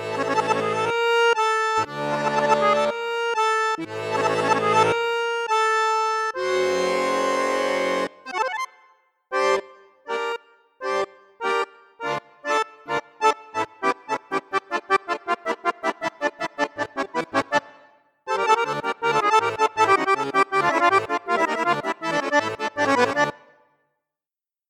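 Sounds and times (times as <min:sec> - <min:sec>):
Hohner Morino Artiste VI D accordion on bassoon flute piccolo register: 0:00.0 - 0:23.7.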